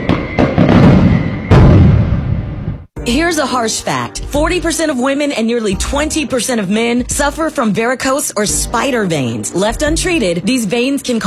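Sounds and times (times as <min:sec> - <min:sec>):
fireworks exploding at a 4th of July celebration: 0:00.0 - 0:02.9
speech: 0:03.1 - 0:11.2.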